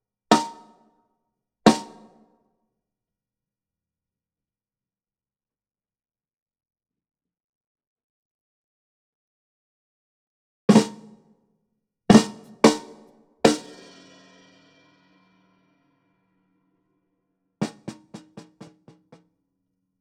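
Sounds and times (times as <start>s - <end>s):
snare drum recorded from the top: 0.3s - 0.8s, 1.7s - 2.2s, 10.7s - 11.2s, 12.1s - 14.4s, 17.6s - 19.2s.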